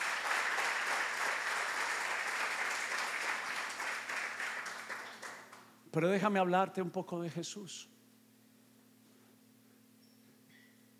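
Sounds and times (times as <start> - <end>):
audience applause: 0.0 - 5.6
speech: 6.0 - 8.0.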